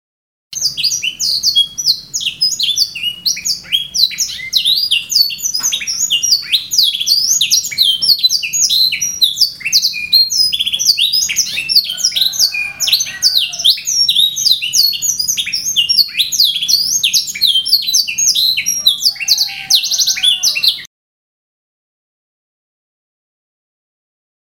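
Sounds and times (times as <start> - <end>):
canary singing: 0.6 - 20.9.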